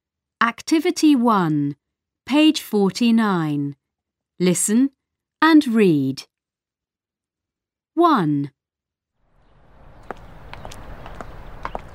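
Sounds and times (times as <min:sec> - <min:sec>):
speech: 0:00.4 - 0:03.8, 0:04.4 - 0:06.3, 0:08.0 - 0:08.6
footsteps of a girl walking to school: 0:09.7 - 0:11.9.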